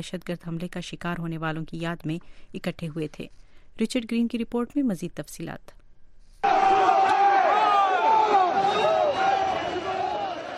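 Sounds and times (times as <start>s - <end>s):
speech: 0.0s - 5.8s
protesters chanting anti-immigrant slogans in a city square in central Brussels: 6.4s - 10.5s.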